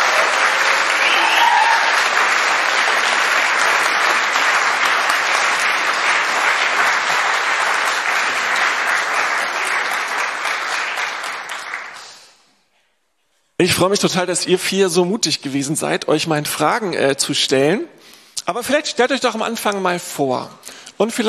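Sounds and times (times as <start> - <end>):
audience applause: 0.0 - 12.3
speech: 13.6 - 21.2.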